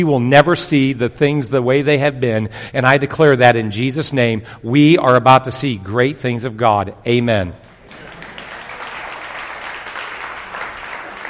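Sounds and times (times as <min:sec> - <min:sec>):
speech: 0:00.0 - 0:07.6
audience applause: 0:07.8 - 0:11.2.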